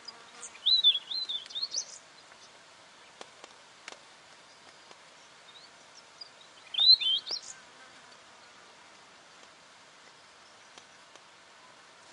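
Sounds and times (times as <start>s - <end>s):
weebill singing ticking notes and warbled phrases: 0.0s - 3.2s, 4.5s - 7.6s.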